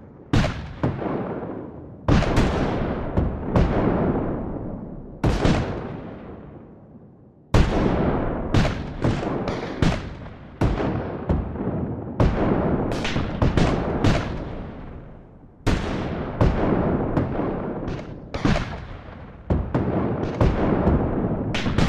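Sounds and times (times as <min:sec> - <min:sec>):
battlefield gunfire: 0:00.0 - 0:06.5, 0:07.6 - 0:21.8
Civil War Revolutionary cannons firing: 0:00.0 - 0:06.8, 0:07.5 - 0:21.8.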